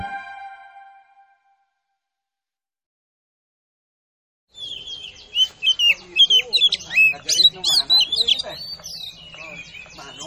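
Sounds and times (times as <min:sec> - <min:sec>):
Oriental magpie-robin calls: 0:04.5 - 0:10.2.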